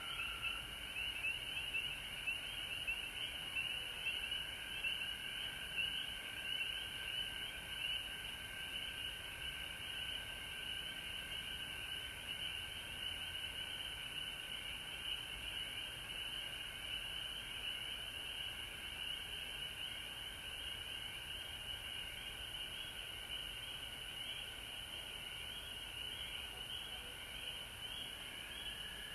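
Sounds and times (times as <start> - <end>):
frog chorus: 0.0 - 29.1.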